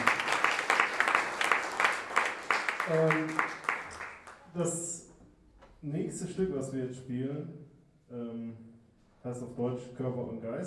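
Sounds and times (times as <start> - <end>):
audience applause: 0.0 - 4.5
speech: 2.9 - 3.5, 4.6 - 5.0, 5.8 - 10.6.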